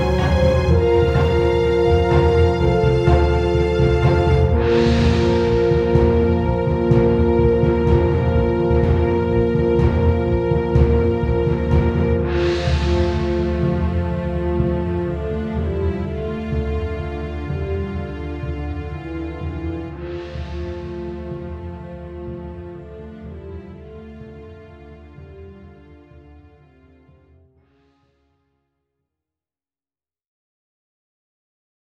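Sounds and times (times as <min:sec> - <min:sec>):
final battle music: 0:00.0 - 0:25.5.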